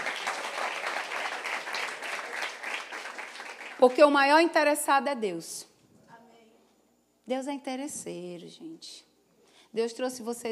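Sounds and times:
audience applause: 0.0 - 4.1
speech: 3.8 - 5.7, 7.3 - 9.1, 9.7 - 10.5.

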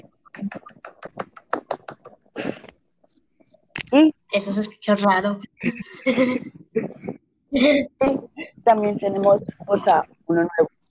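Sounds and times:
small group clapping: 0.0 - 2.2
speech: 3.9 - 6.6, 7.6 - 10.7
laughter: 5.6 - 6.5.

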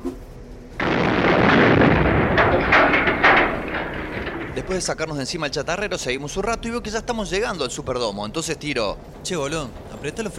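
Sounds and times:
dynamite explosion: 0.8 - 5.6
roaring rumble with crackling bursts: 0.8 - 10.3
speech: 4.7 - 10.3.

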